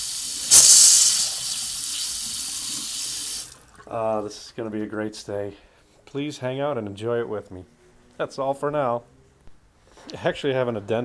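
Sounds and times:
bathroom sink faucet running water: 0:00.0 - 0:03.9
speech: 0:03.9 - 0:09.1, 0:10.1 - 0:11.0.

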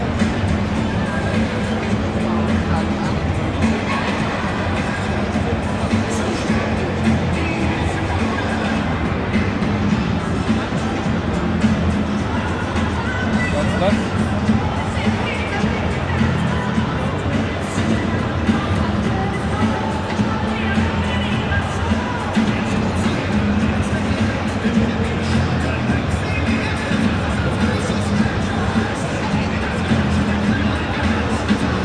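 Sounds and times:
live stadium crowd at the Waldstadion: 0:00.0 - 0:31.8.

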